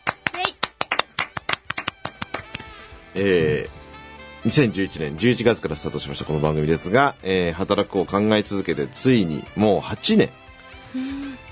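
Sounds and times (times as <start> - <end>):
small group clapping: 0.0 - 2.8
speech: 3.1 - 3.8, 4.4 - 11.2.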